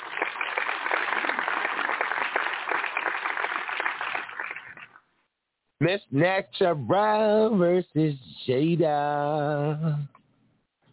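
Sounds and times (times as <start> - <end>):
applause: 0.0 - 5.0
speech: 5.8 - 10.2.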